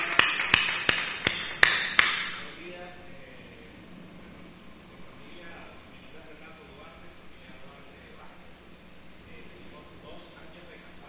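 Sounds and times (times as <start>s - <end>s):
applause: 0.0s - 2.4s.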